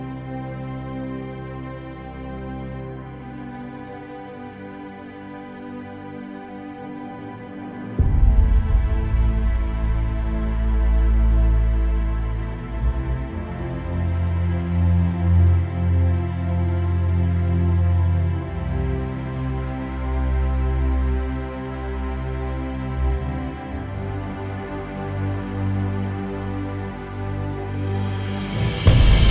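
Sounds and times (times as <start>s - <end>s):
strings: 0.0s - 29.3s
percussion: 7.9s - 16.6s, 26.2s - 29.3s.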